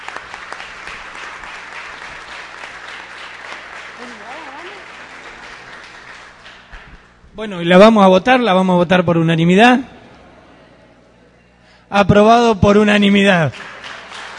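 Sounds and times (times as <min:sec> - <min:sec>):
loud applause from audience: 0:00.0 - 0:07.1, 0:12.8 - 0:14.3
speech: 0:07.4 - 0:10.0, 0:11.9 - 0:13.7.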